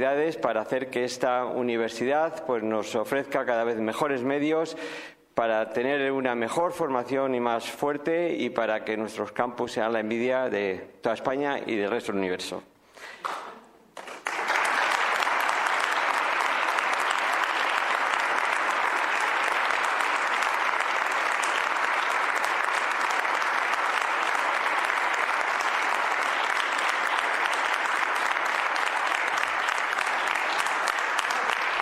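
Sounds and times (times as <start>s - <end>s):
speech: 0.0s - 13.4s
audience applause: 13.2s - 31.8s.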